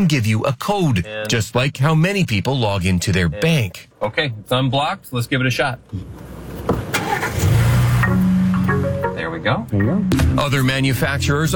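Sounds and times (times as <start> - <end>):
speech: 0.0 - 6.3, 9.4 - 11.5
car engine starting and idling: 3.6 - 11.5.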